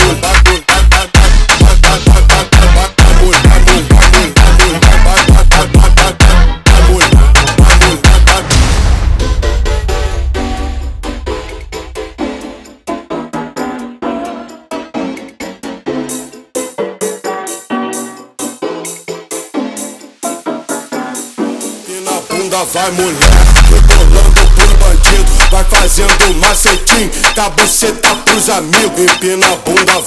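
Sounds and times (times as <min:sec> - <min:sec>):
slowed funk with Vocaloid synthesized vocals: 0:00.0 - 0:09.4, 0:21.0 - 0:30.0.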